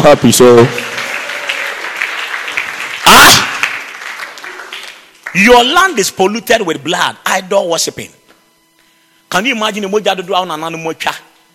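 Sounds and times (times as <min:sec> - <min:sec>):
speech: 0:00.0 - 0:01.0, 0:05.3 - 0:08.2, 0:09.3 - 0:11.3
church congregation clapping during a sermon: 0:00.0 - 0:06.1.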